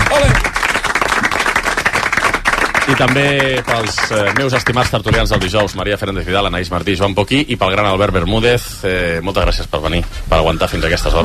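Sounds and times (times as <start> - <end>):
audience applause for the day's contestants: 0.0 - 5.9
speech: 2.9 - 11.2.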